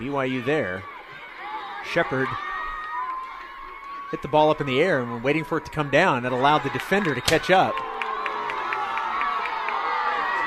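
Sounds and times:
speech: 0.0s - 0.9s, 1.8s - 2.5s, 4.1s - 7.9s
stadium crowd booing: 0.0s - 10.4s.

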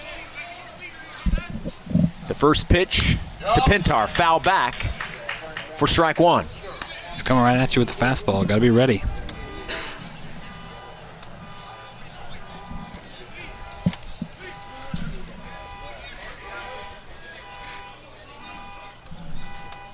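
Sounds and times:
speech: 2.4s - 4.9s, 5.8s - 6.6s, 7.2s - 9.1s
car alarm going off at a baseball game: 6.6s - 19.9s.

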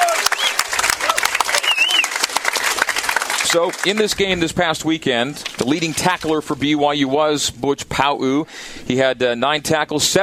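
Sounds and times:
cheering and whistles: 0.0s - 2.3s
show audience applause welcoming a BYU linebacker: 0.0s - 6.4s
speech: 3.5s - 10.2s.

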